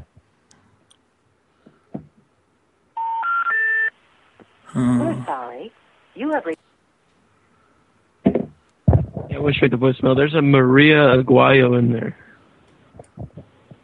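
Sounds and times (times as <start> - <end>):
touch-tone beeps of a phone number being dialed on a telephone: 3.0 - 3.9
speech: 4.8 - 6.5, 9.5 - 12.3.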